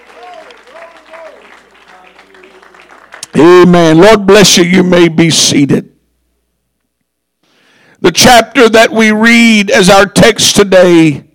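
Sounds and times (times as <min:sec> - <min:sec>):
audience clapping hands in praise: 0:00.0 - 0:03.7
speech: 0:03.4 - 0:05.9, 0:08.0 - 0:11.3.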